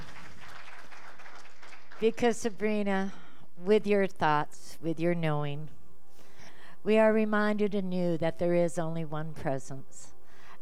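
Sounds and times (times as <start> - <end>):
audience applause: 0.0 - 2.1
speech: 2.0 - 5.8, 6.8 - 10.2.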